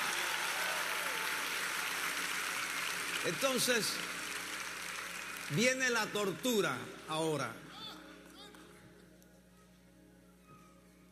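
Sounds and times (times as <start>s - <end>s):
audience applauding: 0.0s - 6.7s
speech: 3.2s - 4.2s, 5.5s - 7.8s.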